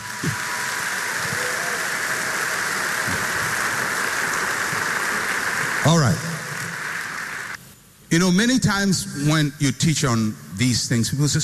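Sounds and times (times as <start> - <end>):
audience clapping: 0.0 - 7.6
speech: 5.8 - 6.2, 8.1 - 11.4.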